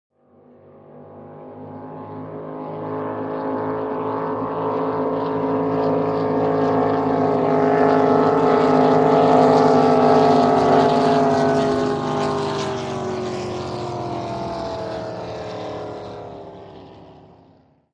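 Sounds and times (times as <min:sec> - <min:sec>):
two drag boats passing by: 0:00.4 - 0:17.8.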